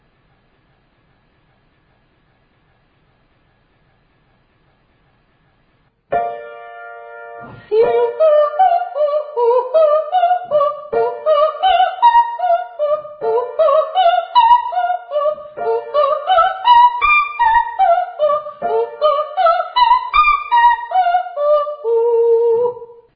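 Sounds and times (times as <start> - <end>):
person singing ascending triads and octaves to high D: 7.6 - 23.1.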